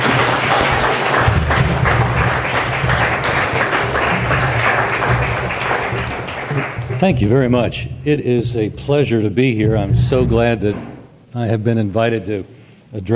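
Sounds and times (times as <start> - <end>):
audience applause: 0.0 - 7.7
speech: 7.0 - 13.1.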